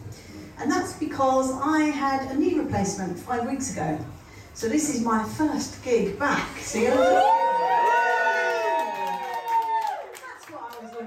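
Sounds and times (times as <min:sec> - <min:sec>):
speech: 0:00.6 - 0:07.4
crowd cheering and whooping at a comedy gig called Ping Pong: 0:06.8 - 0:10.2.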